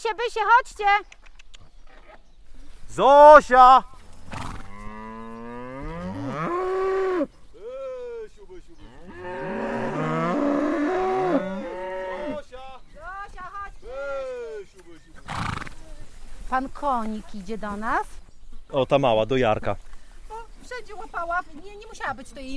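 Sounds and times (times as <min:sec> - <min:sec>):
speech: 0:00.0 - 0:01.2, 0:02.9 - 0:03.9, 0:16.5 - 0:19.9, 0:20.7 - 0:22.5
cows mooing: 0:04.3 - 0:07.3, 0:08.8 - 0:12.4.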